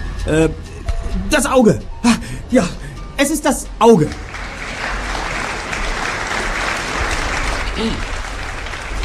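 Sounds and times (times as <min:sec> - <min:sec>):
speech: 0:00.2 - 0:04.2, 0:07.8 - 0:08.1
restrained applause from audience stands: 0:03.9 - 0:09.0.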